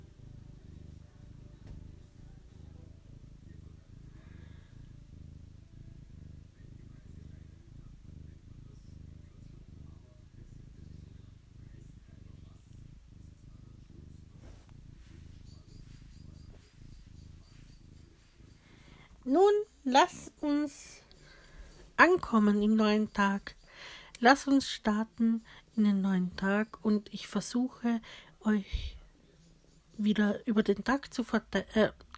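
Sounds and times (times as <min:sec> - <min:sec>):
cat purring: 0:00.0 - 0:32.1
speech: 0:19.3 - 0:21.0, 0:22.0 - 0:23.6, 0:24.2 - 0:29.0, 0:30.0 - 0:32.1.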